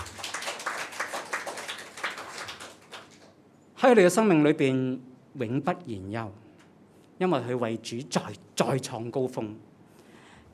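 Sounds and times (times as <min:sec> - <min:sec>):
audience applause: 0:00.0 - 0:03.4
speech: 0:03.8 - 0:06.4, 0:07.2 - 0:09.7.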